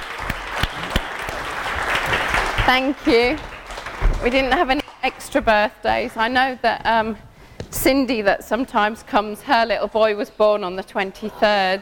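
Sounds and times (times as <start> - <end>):
audience applause at a community gathering: 0.0 - 5.3
speech: 2.7 - 3.5, 4.2 - 11.7.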